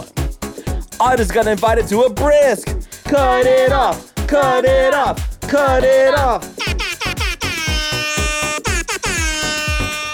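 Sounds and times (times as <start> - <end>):
speech: 1.0 - 6.5
air horn blast: 7.5 - 10.1.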